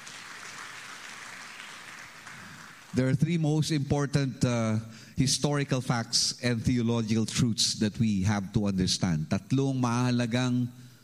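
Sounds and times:
church congregation applauding during an Easter sermon: 0:00.0 - 0:03.3
speech: 0:02.9 - 0:10.9.

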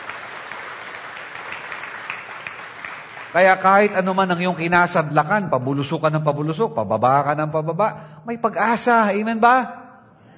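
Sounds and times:
church congregation clapping in praise of the Lord: 0:00.0 - 0:05.3
speech: 0:03.3 - 0:09.8.

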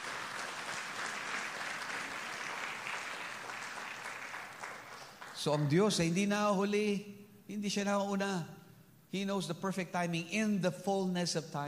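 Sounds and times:
church congregation clapping hands: 0:00.0 - 0:06.0
speech: 0:05.4 - 0:11.6.

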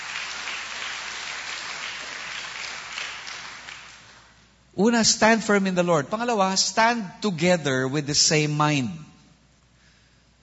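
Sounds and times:
church congregation applauding in praise of the Lord: 0:00.0 - 0:04.4
speech: 0:04.8 - 0:09.1.

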